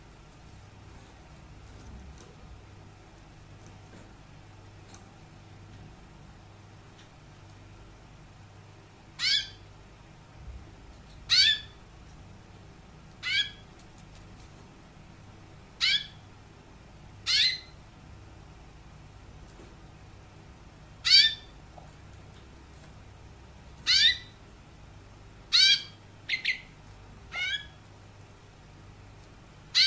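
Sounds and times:
canary giving sharp chirps: 9.1s - 9.7s, 11.2s - 11.9s, 13.1s - 13.8s, 15.8s - 16.4s, 17.2s - 17.9s, 21.0s - 21.6s, 23.8s - 24.4s, 25.4s - 27.9s, 29.6s - 29.8s.

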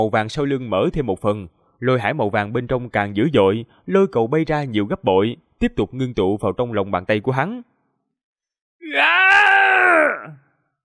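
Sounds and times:
speech: 0.0s - 7.7s, 8.8s - 10.4s
man's anguished scream of pain: 8.8s - 10.4s.

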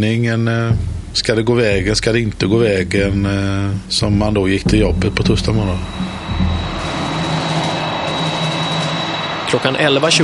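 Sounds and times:
speech: 0.0s - 6.2s, 9.5s - 10.2s
Air Force One jet landing and taxiing at Landvetter airport: 4.9s - 10.2s.

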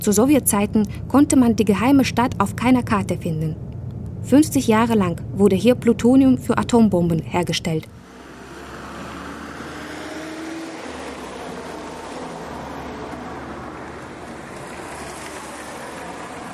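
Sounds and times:
speech: 0.0s - 8.0s
bus driving with steady low engine drone: 0.0s - 16.5s
road and wind noise: 0.0s - 16.5s.

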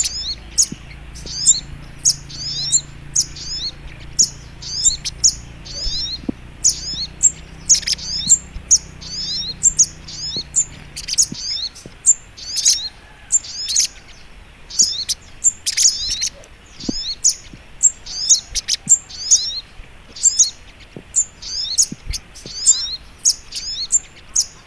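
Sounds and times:
Little Spiderhunter singing: 0.0s - 14.0s, 14.7s - 24.6s
low hum: 0.0s - 19.6s.

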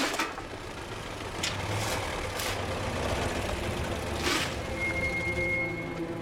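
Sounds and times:
car pulling up, low engine rumble: 0.2s - 6.1s
coal being scooped up outdoors by a coal man: 4.2s - 4.7s.

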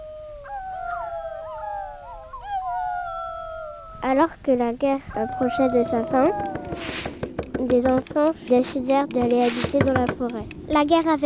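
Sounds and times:
pack of wolves howling in a forest: 0.0s - 11.2s
speech: 4.1s - 11.2s.

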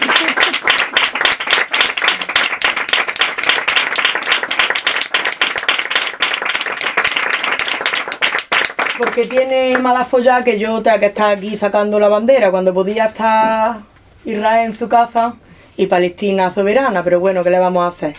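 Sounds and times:
audience applause: 0.0s - 9.8s
speech: 9.0s - 18.1s.

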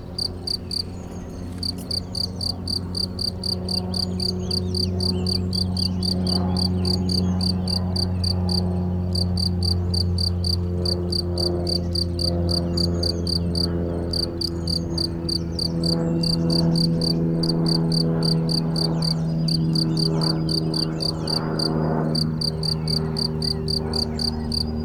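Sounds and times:
single cricket chirping in Chindrieux France: 0.0s - 1.0s, 1.6s - 24.7s.

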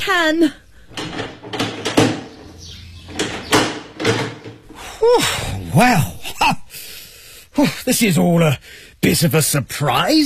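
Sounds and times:
speech: 0.0s - 1.4s, 5.0s - 6.9s, 7.6s - 10.2s
door being unlocked and opened: 0.9s - 4.7s.

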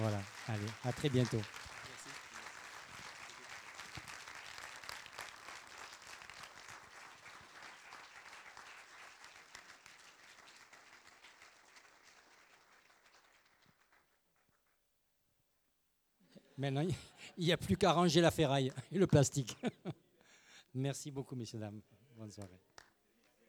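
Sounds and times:
laughter: 0.0s - 1.4s, 16.4s - 20.1s
speech: 0.0s - 1.6s, 16.6s - 20.0s, 20.7s - 22.7s
audience applause for a performer who played instruments made that day: 0.0s - 14.0s.

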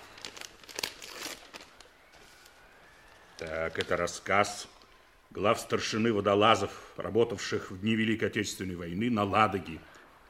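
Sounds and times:
paper package being torn open: 0.0s - 2.0s
speech: 3.4s - 9.9s.

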